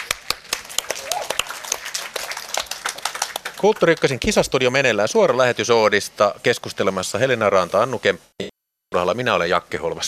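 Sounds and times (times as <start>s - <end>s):
small round of applause: 0.0s - 4.3s
speech: 3.6s - 10.0s.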